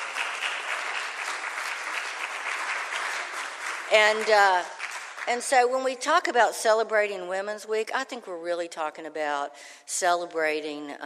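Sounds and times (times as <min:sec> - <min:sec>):
audience round of applause: 0:00.0 - 0:05.3
speech: 0:03.9 - 0:11.0.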